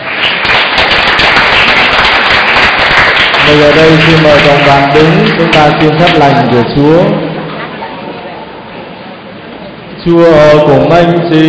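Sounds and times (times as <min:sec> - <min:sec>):
audience applauding: 0:00.0 - 0:06.6
speech: 0:03.5 - 0:07.3, 0:10.0 - 0:11.4.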